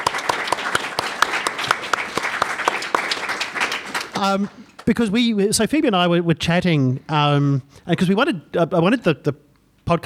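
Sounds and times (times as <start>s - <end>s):
round of applause: 0.0s - 4.9s
speech: 4.2s - 10.0s.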